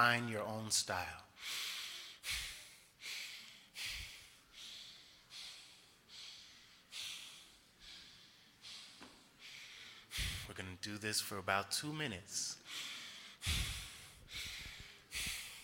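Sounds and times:
speech: 0:00.0 - 0:02.4, 0:10.5 - 0:12.6, 0:13.4 - 0:13.7
quick forceful breaths of a three-part breathing exercise through nose and mouth: 0:01.4 - 0:10.5, 0:12.6 - 0:15.6.

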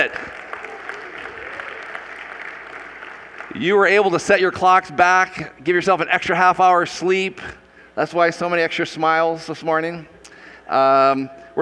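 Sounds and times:
audience applauding: 0:00.0 - 0:04.0
speech: 0:03.5 - 0:10.1, 0:10.7 - 0:11.6.

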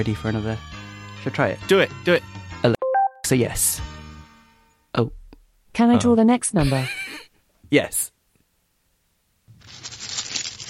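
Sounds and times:
speech: 0:00.0 - 0:04.0, 0:05.0 - 0:05.2, 0:05.8 - 0:07.0, 0:07.7 - 0:08.1
paper being unwrapped: 0:09.5 - 0:10.6.

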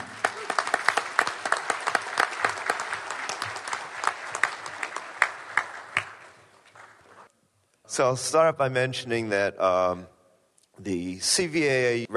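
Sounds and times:
audience applause: 0:00.0 - 0:07.3
speech: 0:08.0 - 0:10.1, 0:10.8 - 0:12.1.

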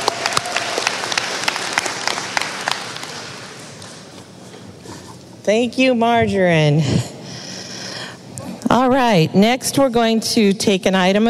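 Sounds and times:
audience applause: 0:00.0 - 0:03.8
speech: 0:05.5 - 0:07.1, 0:08.7 - 0:11.2.

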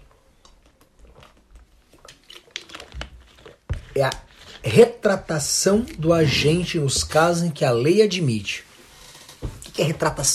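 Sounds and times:
plastic bottle crinkling: 0:00.5 - 0:06.7
person drinking water: 0:01.1 - 0:07.1
speech: 0:04.0 - 0:08.7, 0:09.8 - 0:10.3.

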